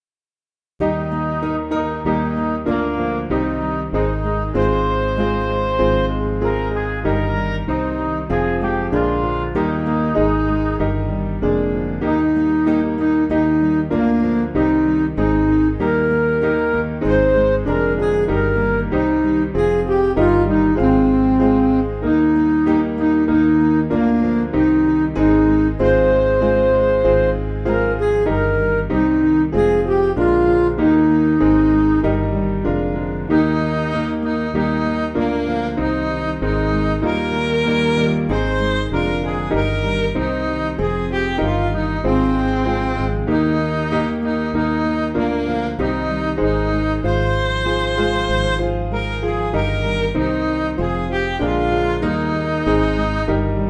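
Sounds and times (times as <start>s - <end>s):
backing music for churches: 0.8s - 53.6s.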